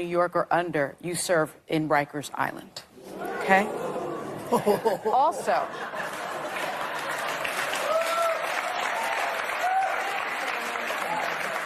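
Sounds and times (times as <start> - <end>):
speech: 0.0 - 2.9, 3.5 - 6.0
laughter: 3.2 - 7.6
audience applause: 5.9 - 11.6.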